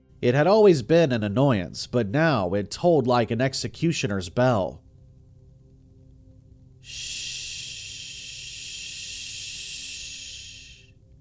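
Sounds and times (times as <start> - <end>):
speech: 0.2 - 4.8
radio static hiss: 6.9 - 10.9.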